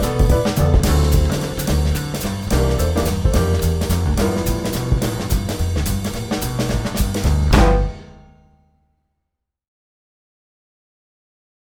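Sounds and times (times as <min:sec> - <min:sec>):
jazz waltz blues backing track: 0:00.0 - 0:07.9.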